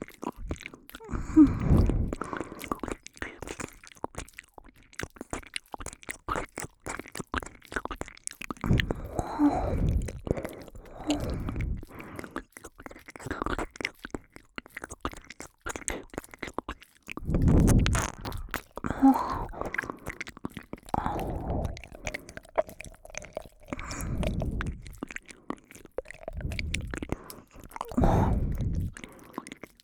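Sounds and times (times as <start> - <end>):
ear licking sounds in right channel: 0.0 - 29.8.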